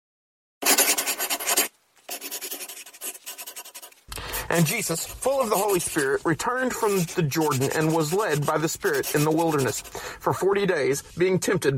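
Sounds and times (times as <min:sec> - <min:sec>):
writing equipment scratching across a surface: 0:00.6 - 0:10.0
speech: 0:04.5 - 0:11.7.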